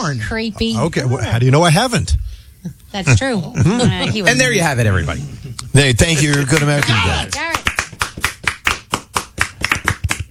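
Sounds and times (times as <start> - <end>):
speech: 0.0 - 7.5
people clapping: 6.2 - 10.2.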